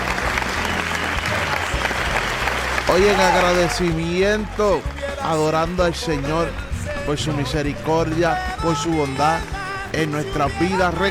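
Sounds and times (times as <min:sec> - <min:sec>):
audience applause: 0:00.0 - 0:05.5
speech: 0:02.9 - 0:11.0.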